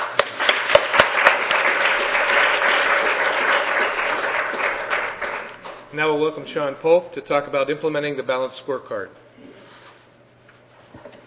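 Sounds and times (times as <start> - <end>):
audience applause thanking a speaker after a talk: 0.0 - 5.8
speech: 6.0 - 9.6.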